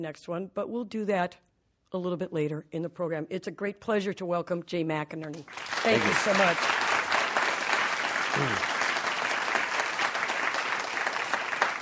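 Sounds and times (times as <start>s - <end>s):
speech: 0.0s - 6.8s, 8.4s - 8.8s
audience applause: 5.4s - 11.8s.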